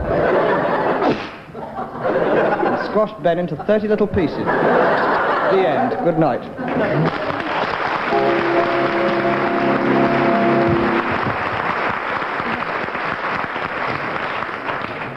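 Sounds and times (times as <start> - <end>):
laughter: 0.0 - 8.8
speech: 2.9 - 7.3
audience applause: 6.6 - 15.1.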